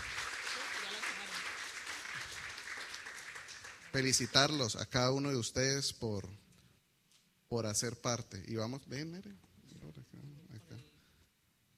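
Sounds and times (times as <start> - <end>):
church audience applause: 0.0 - 4.7
speech: 3.9 - 6.4, 7.5 - 10.0.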